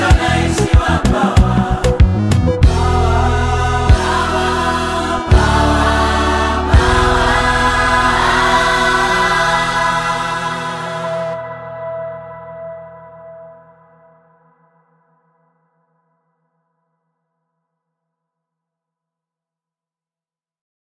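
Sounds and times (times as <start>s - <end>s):
choir singing: 0.0s - 12.5s.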